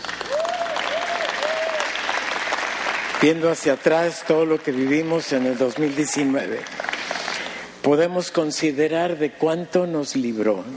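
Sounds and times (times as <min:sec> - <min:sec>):
audience applause: 0:00.0 - 0:07.5
speech: 0:03.2 - 0:06.9, 0:07.8 - 0:10.7.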